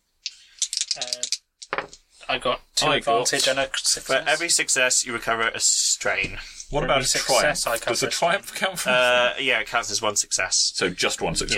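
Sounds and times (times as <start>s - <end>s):
dice tumbling: 0.2s - 2.0s
speech: 1.0s - 1.4s, 2.3s - 11.5s.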